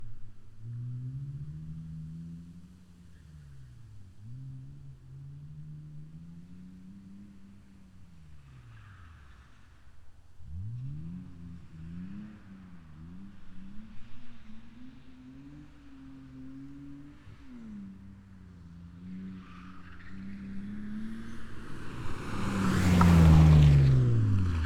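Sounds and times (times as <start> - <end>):
BMW E36 race car taking a race track corner: 8.4 - 24.6.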